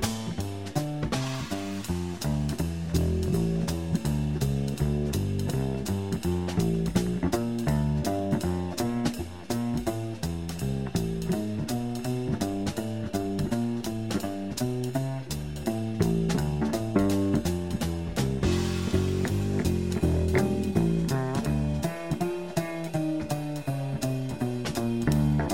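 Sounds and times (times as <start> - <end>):
blues music without piano: 0.0 - 25.5.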